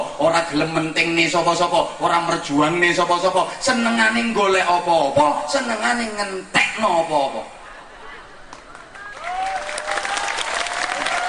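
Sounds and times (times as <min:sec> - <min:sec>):
speech: 0:00.2 - 0:07.6
audience clapping at a speech about leaders and voting: 0:08.5 - 0:11.2.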